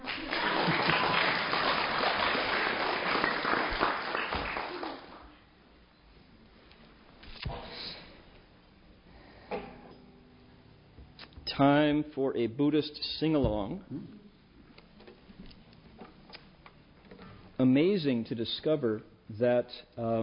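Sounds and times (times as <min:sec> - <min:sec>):
audience applause: 0:00.0 - 0:05.4
speech: 0:11.6 - 0:14.2, 0:18.0 - 0:20.2.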